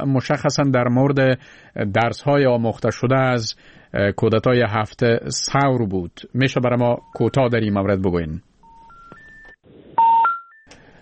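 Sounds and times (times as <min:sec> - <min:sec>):
speech: 0:00.0 - 0:08.5
electronic telephone tones as a call drops: 0:08.6 - 0:10.9.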